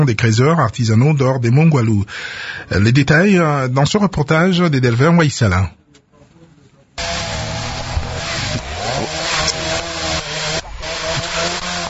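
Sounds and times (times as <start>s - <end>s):
speech: 0.0s - 5.8s
chainsaw felling trees by the roadside: 7.0s - 11.8s.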